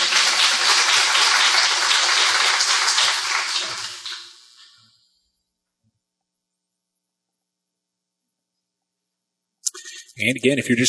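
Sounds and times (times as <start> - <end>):
audience applause: 0.0 - 4.4
speech: 10.2 - 10.8.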